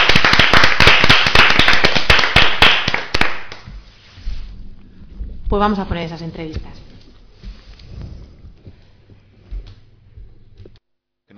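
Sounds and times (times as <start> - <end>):
applause: 0.0 - 3.7
speech: 5.5 - 6.9.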